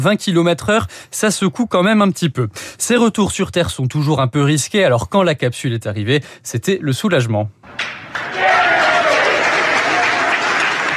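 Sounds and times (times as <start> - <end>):
speech: 0.0 - 8.4
applause in a mission control room: 8.2 - 10.9.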